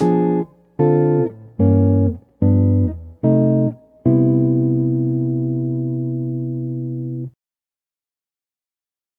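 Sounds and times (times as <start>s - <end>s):
jazz music: 0.0s - 7.2s.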